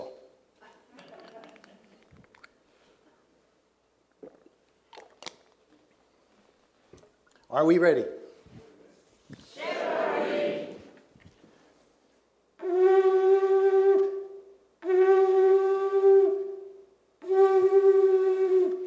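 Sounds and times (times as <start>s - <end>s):
speech: 7.5s - 8.2s
shofar blast with shevarim broken wailing notes: 12.6s - 18.8s.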